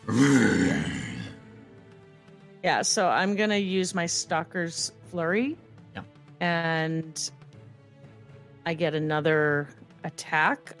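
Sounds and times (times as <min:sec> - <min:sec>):
person imitating a creature's growl: 0:00.0 - 0:01.4
speech: 0:00.1 - 0:00.4, 0:02.6 - 0:07.4, 0:08.7 - 0:10.7.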